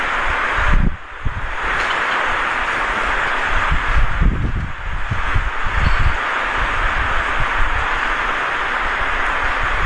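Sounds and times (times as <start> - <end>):
loud electric fan running: 0.0 - 9.8.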